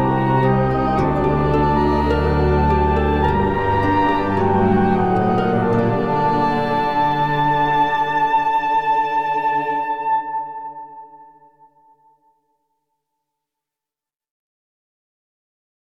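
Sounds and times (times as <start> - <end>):
prelude: 0.0 - 11.7.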